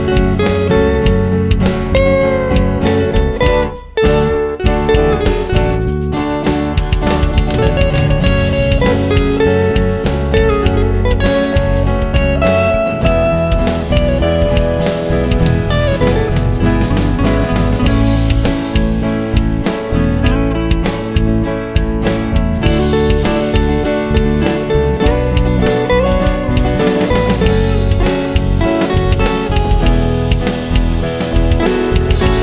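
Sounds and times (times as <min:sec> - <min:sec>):
drum fills: 0:00.0 - 0:32.4
lead melody: 0:00.0 - 0:32.4.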